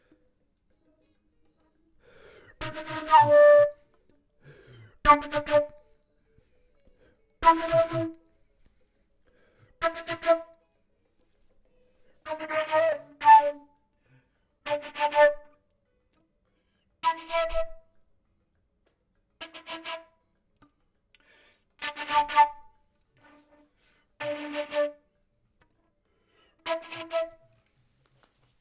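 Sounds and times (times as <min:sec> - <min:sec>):
flute: 0:02.2 - 0:09.0, 0:09.8 - 0:10.8, 0:11.6 - 0:13.9, 0:14.7 - 0:15.7, 0:17.0 - 0:18.0, 0:21.8 - 0:23.6, 0:24.2 - 0:25.1, 0:26.6 - 0:27.8.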